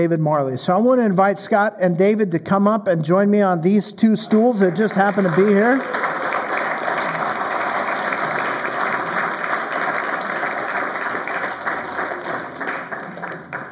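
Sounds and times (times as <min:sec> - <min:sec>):
speech: 0:00.0 - 0:06.1
audience applause: 0:04.6 - 0:13.7.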